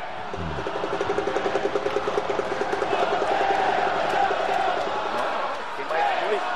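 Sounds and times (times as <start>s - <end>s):
stadium crowd cheering for a football player: 0.0s - 6.5s.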